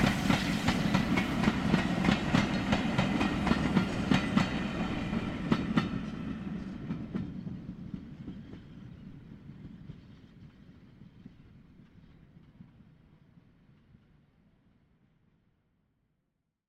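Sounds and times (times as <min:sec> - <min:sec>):
steam train passing close by: 0:00.0 - 0:11.4.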